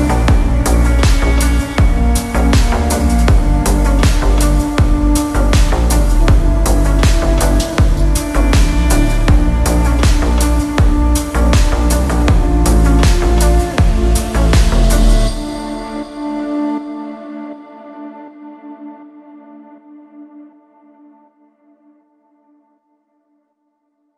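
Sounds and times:
slowed reverb remix: 0:00.0 - 0:17.2.

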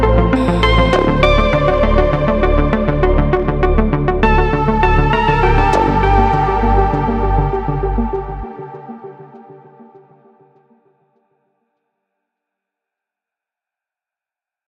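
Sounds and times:
deep electronic lounge music with deep bass: 0:00.0 - 0:10.4.

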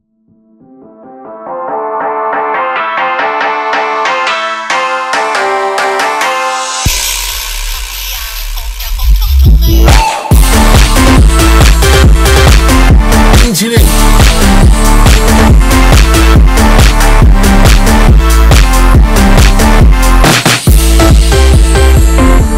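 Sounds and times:
Chinese phonk music: 0:00.7 - 0:22.5.

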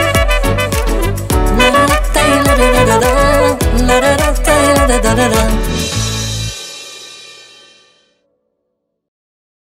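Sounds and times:
saxophone: 0:00.0 - 0:06.0.

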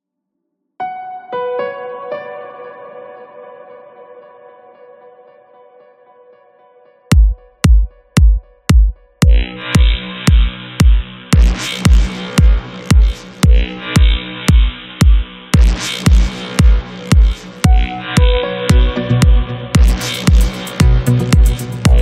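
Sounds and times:
deep house dance music remix with vocals: 0:07.1 - 0:22.0.

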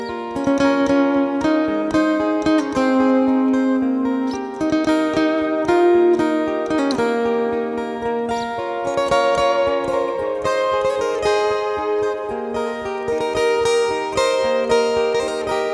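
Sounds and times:
acoustic guitar playing a cover: 0:00.0 - 0:15.7.

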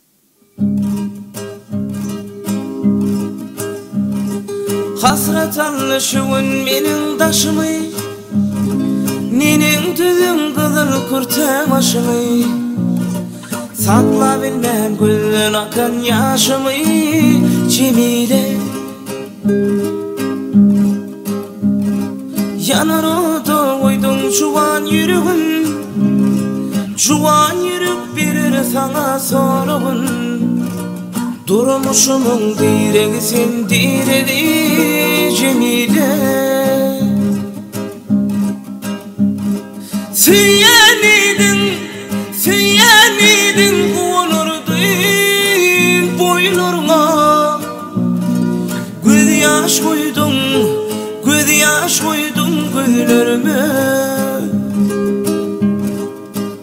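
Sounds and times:
guitar: 0:00.0 - 0:56.6.

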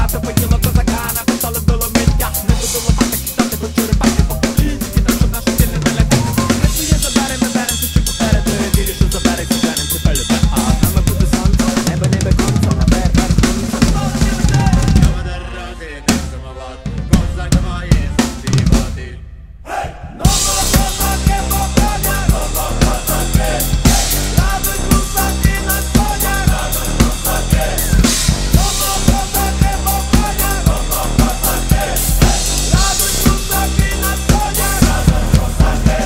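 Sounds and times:
drums playing a cover: 0:00.0 - 0:15.3, 0:16.1 - 0:19.2, 0:20.2 - 0:36.0.

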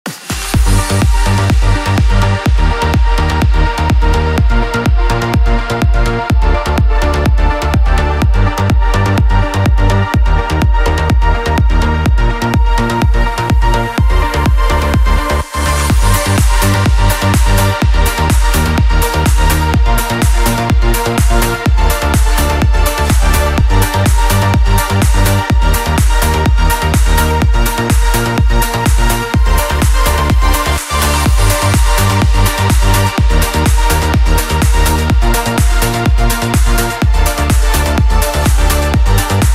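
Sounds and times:
progressive trance music: 0:00.1 - 0:39.5.

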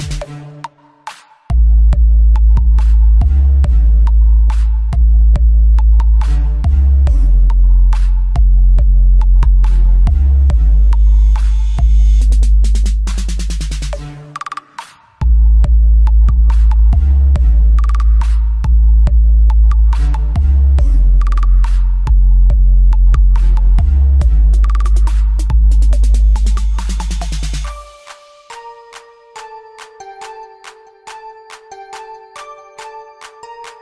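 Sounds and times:
ultra deep bass test from a boombox: 0:01.5 - 0:14.1, 0:15.2 - 0:27.7.

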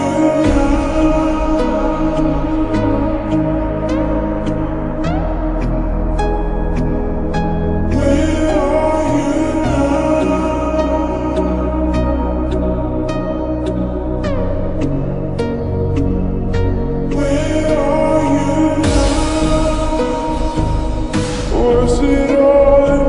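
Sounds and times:
slowed reverb music with boosted bass: 0:00.0 - 0:23.0.

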